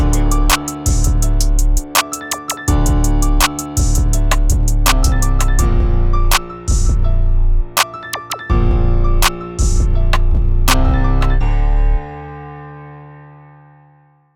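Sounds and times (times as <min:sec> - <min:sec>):
hip hop music: 0:00.0 - 0:11.5.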